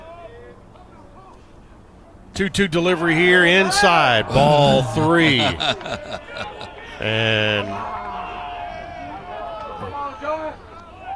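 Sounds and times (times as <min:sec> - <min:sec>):
speech: 0:02.4 - 0:08.0
Belmont baseball fans cheering for a strikeout: 0:03.6 - 0:07.7
laughter: 0:04.3 - 0:07.8.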